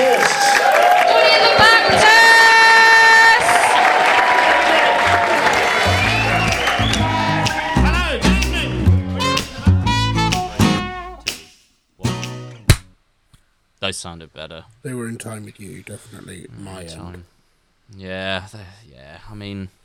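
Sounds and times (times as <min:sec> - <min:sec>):
audience applause: 0:00.0 - 0:08.7
audience cheering: 0:00.0 - 0:10.8
speech: 0:14.0 - 0:19.8.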